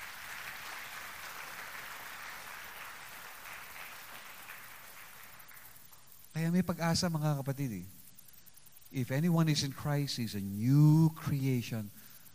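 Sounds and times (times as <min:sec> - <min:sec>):
crowd clapping hands: 0:00.0 - 0:06.0
speech: 0:06.4 - 0:08.0, 0:08.9 - 0:12.1.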